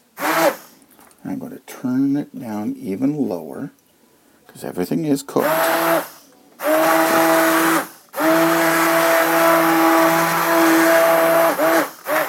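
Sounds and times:
stick blender puréeing a pot of cooked soup: 0.2 - 0.7, 5.4 - 12.2
speech: 1.3 - 3.8, 4.6 - 6.1.

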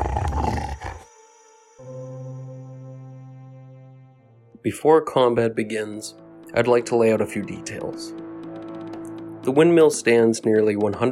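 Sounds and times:
low growling snarl of a creature: 0.0 - 1.0
speech: 4.6 - 8.2, 9.5 - 11.1.

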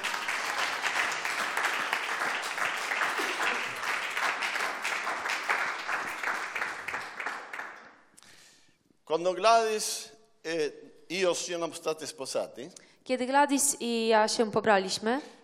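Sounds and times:
audience applause: 0.0 - 8.1
speech: 9.2 - 15.4.

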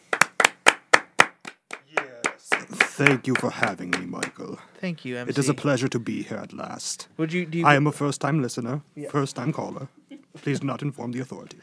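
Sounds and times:
sharp hand claps in steady rhythm: 0.0 - 4.5
speech: 3.0 - 11.6.

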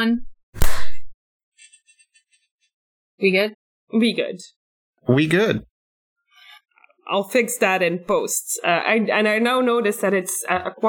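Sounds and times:
speech: 0.0 - 0.7, 3.2 - 5.7, 7.1 - 10.8
hand clap for sync: 0.6 - 0.9.

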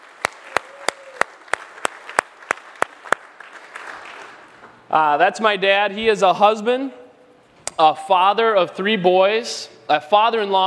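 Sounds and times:
audience applause: 0.0 - 4.6
speech: 4.9 - 7.0, 7.8 - 10.6.

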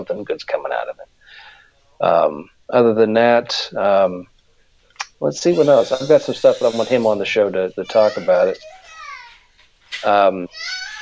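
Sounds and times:
speech: 0.0 - 4.3, 5.2 - 8.8, 10.0 - 10.8
children screaming: 5.4 - 9.5, 10.4 - 11.0.

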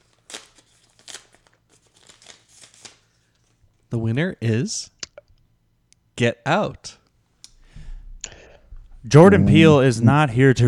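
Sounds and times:
paper envelope being opened: 0.0 - 3.1
speech: 3.9 - 5.0, 6.2 - 7.0, 9.0 - 10.6.

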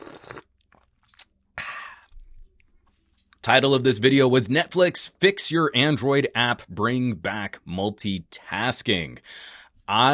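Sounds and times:
person drinking a sip of water: 0.0 - 2.2
speech: 3.4 - 10.1.

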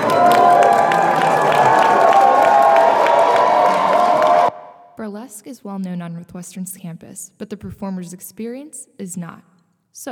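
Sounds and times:
audience applause: 0.0 - 4.6
speech: 5.4 - 10.1.

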